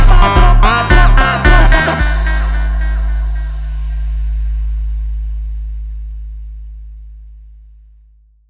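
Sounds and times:
slowed funk music: 0.0 - 5.6.

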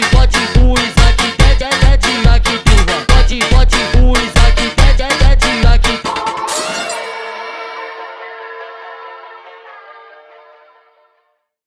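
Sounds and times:
sped up Christmas kids funk song: 0.0 - 6.8.

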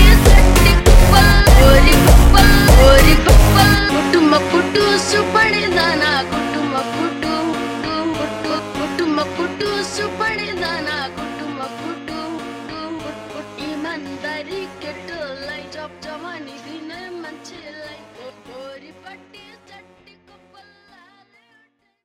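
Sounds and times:
super slowed funk music: 0.0 - 11.4.

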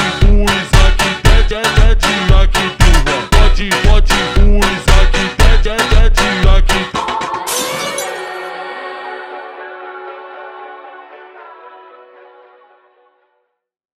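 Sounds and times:
slowed Christmas kids funk: 0.0 - 8.4.

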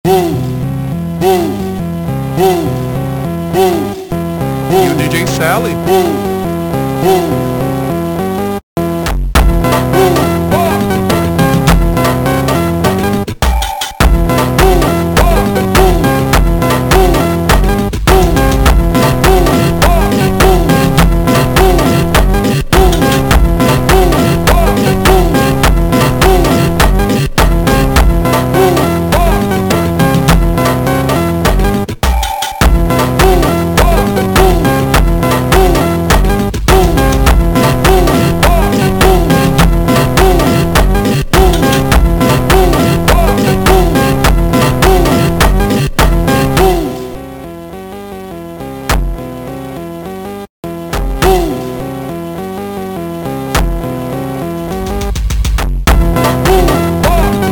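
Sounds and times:
slowed creepy funk music: 0.4 - 57.5.

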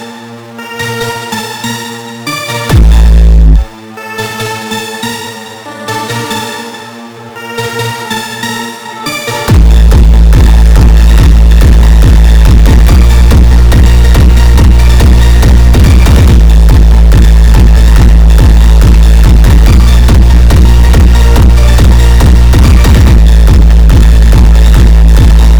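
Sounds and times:
sped up song with reverb: 2.7 - 3.8, 9.5 - 25.5.

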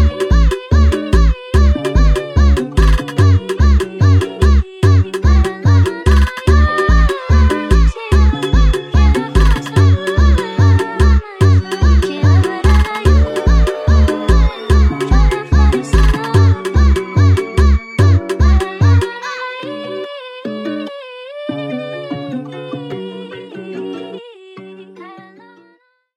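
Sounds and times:
sped up funk music: 0.0 - 19.2.

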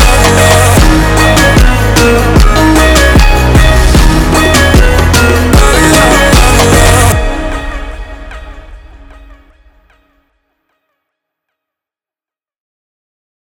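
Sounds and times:
slowed funk music: 0.0 - 10.0.

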